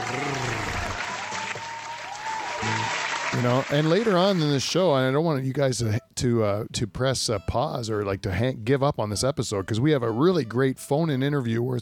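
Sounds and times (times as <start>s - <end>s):
crowd applauding: 0.0s - 4.6s
speech: 3.4s - 11.8s.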